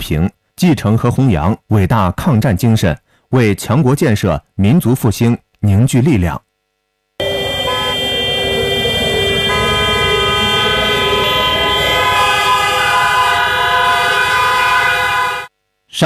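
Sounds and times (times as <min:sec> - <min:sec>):
speech: 0:00.0 - 0:06.5
low traffic rumble: 0:07.2 - 0:14.6
air-raid siren: 0:07.2 - 0:15.5
layered horn-like blasts: 0:07.2 - 0:15.5.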